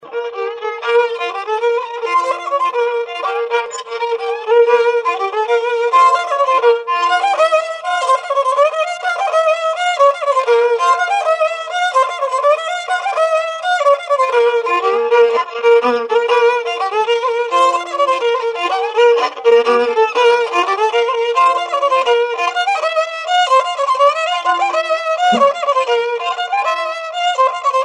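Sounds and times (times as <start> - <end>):
violin folk tune: 0.0 - 27.8.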